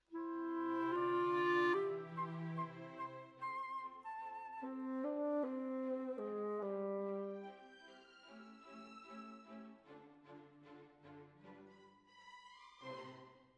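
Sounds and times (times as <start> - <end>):
clarinet: 0.0 - 7.8.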